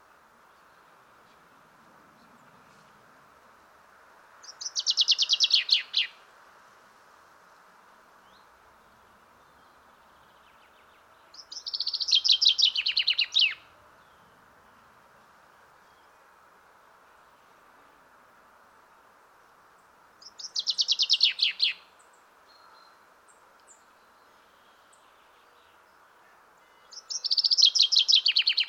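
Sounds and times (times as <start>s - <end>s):
common chaffinch singing: 4.4s - 6.2s, 8.2s - 14.8s, 19.8s - 26.0s, 26.6s - 28.6s.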